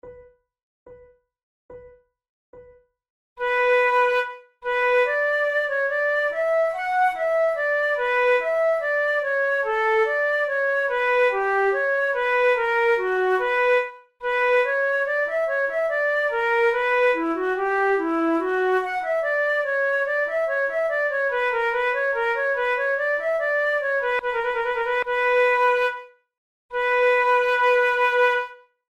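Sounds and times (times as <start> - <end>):
flute prelude: 3.4 - 28.8.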